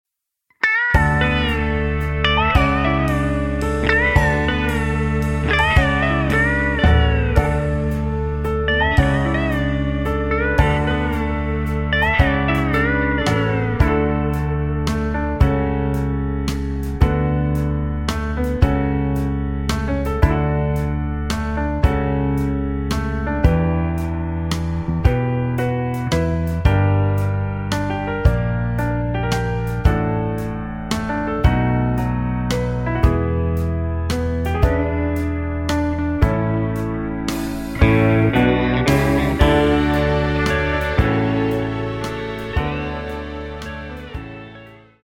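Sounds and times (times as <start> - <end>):
backing track music without backing vocals: 0.6 - 45.0.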